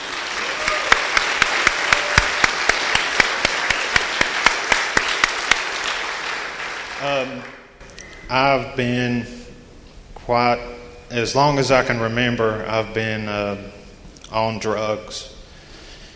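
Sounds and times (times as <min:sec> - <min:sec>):
audience applause: 0:00.0 - 0:07.7
speech: 0:07.1 - 0:07.6, 0:08.3 - 0:09.4, 0:10.3 - 0:15.3.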